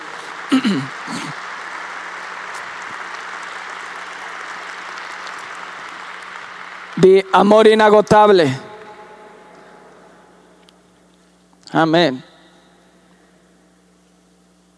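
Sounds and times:
crowd applause: 0.0s - 10.4s
speech: 0.5s - 1.5s, 7.0s - 8.7s, 11.7s - 12.3s.

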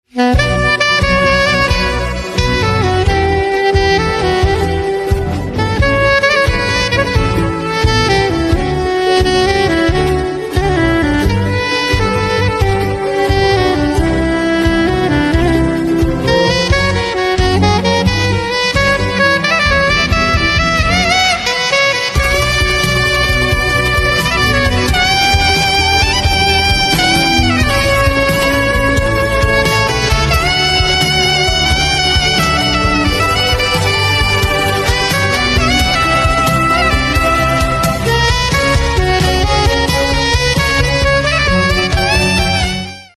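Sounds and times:
instrumental saxophone ringtone: 0.2s - 43.1s.

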